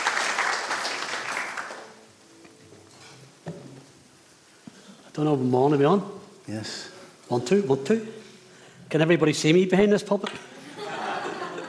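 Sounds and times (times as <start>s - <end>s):
crowd clapping: 0.0s - 2.0s
speech: 5.2s - 8.2s, 8.9s - 10.5s
laughter: 10.5s - 11.6s.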